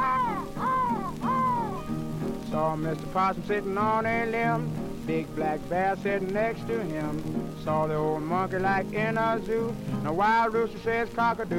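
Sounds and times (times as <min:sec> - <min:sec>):
crow cawing: 0:00.0 - 0:01.9
speech: 0:02.6 - 0:11.5.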